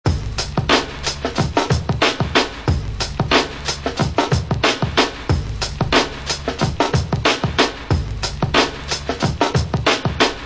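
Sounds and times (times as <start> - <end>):
drum loops: 0.0 - 10.4.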